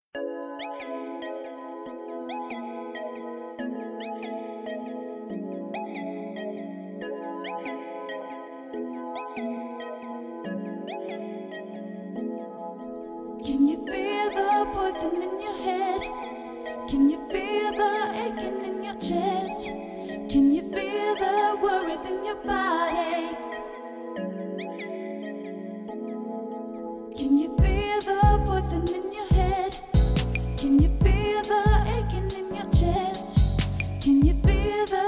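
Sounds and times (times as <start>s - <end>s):
chill vocal music tuned to 432 Hz: 0.2s - 35.0s.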